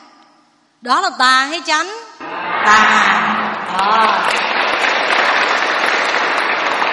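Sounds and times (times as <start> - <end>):
speech: 0.8 - 4.6
audience applause: 2.2 - 6.9.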